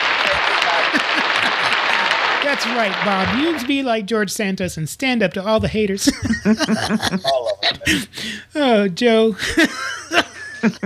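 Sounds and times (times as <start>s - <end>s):
applause sound effect: 0.0s - 3.8s
laughter: 0.0s - 3.8s, 5.4s - 10.8s
speech: 2.5s - 10.8s.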